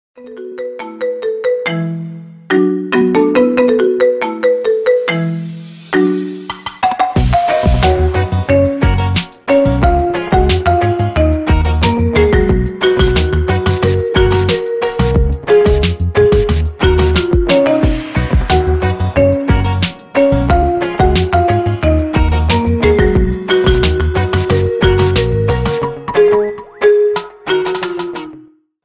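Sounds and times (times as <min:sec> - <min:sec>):
marimba ringtone remix: 0:00.2 - 0:28.6.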